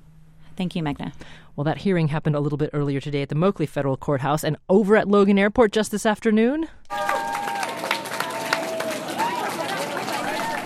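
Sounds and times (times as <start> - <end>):
speech: 0.6 - 7.1
demonstrators cheering and clapping at Logan Airport: 6.9 - 10.6
scattered shouts and whoops: 6.9 - 10.6.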